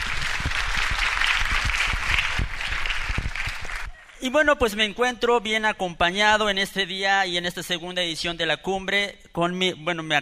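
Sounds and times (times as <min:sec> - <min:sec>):
audience applause: 0:00.0 - 0:04.2
speech: 0:04.2 - 0:10.2.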